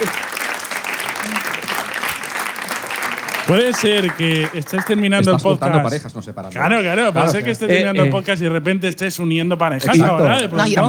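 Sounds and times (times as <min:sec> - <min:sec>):
audience applause: 0:00.0 - 0:05.6
speech: 0:03.5 - 0:10.8.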